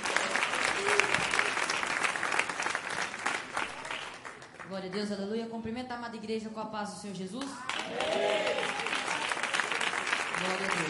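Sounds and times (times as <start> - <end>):
audience applauding: 0.0 - 4.7, 7.6 - 10.8
speech: 4.8 - 9.0, 10.4 - 10.8.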